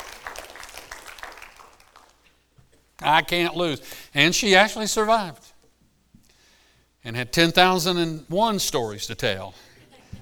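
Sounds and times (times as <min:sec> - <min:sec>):
audience clapping: 0:00.0 - 0:02.4
speech: 0:03.0 - 0:05.4, 0:07.0 - 0:09.7.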